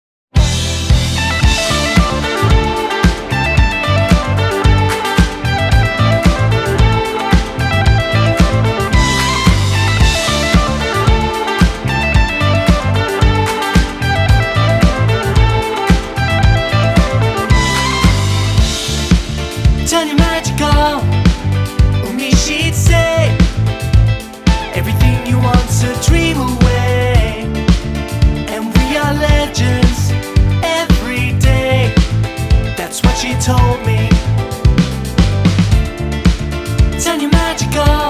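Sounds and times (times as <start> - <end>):
rock pop band: 0.4 - 38.0.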